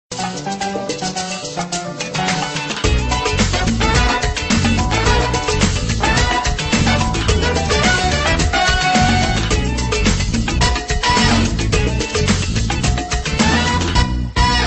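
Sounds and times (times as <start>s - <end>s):
rumba SMS tone: 0.2s - 14.6s.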